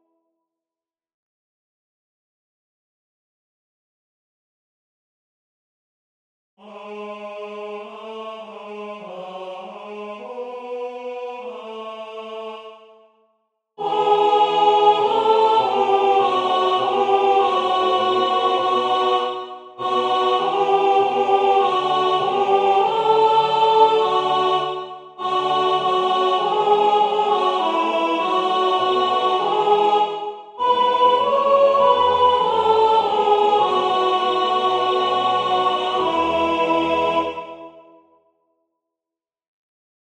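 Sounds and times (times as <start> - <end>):
soprano singing: 13.8 - 37.8.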